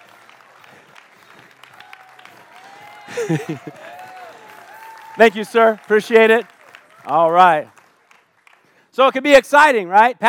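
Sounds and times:
crowd cheering: 0.0s - 8.7s
laughter: 2.9s - 4.2s
speech: 3.1s - 4.0s, 5.2s - 7.8s, 9.0s - 10.2s.

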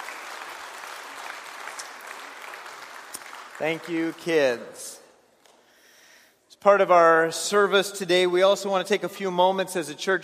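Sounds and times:
audience applauding: 0.0s - 4.6s
speech: 3.6s - 5.0s, 6.6s - 10.2s.

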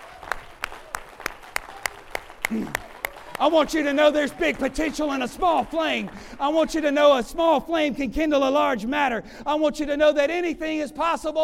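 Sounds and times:
people clapping hands: 0.0s - 7.4s
speech: 2.5s - 11.4s.

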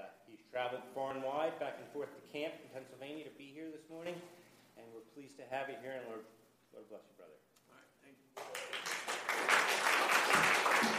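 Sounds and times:
speech: 0.5s - 7.5s
audience clapping: 8.4s - 10.9s.

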